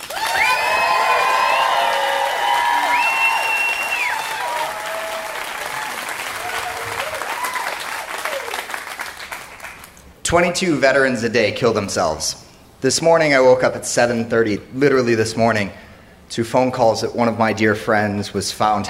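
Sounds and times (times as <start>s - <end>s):
whoops and cheering voices: 0.0s - 8.7s
crowd clapping: 0.0s - 10.0s
speech: 10.3s - 18.8s.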